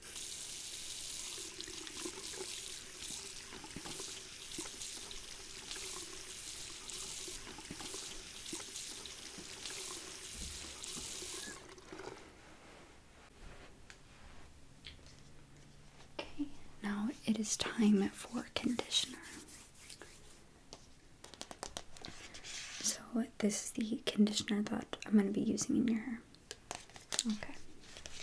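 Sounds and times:
water running from a sink tap while hair is rinsed: 0.0s - 12.3s
speech: 17.4s - 19.4s, 23.2s - 26.3s, 27.2s - 27.6s.

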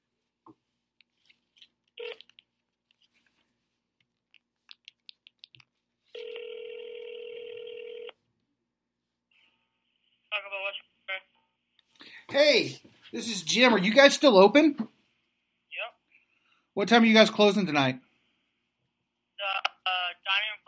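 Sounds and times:
telephone ringing tone: 6.1s - 8.2s
speech: 10.5s - 11.3s, 12.3s - 14.9s, 16.8s - 18.0s.

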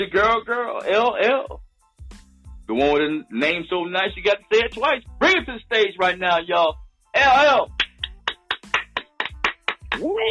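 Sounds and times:
speech: 0.0s - 1.6s, 2.7s - 7.8s, 10.0s - 10.3s
applause: 7.8s - 10.0s.

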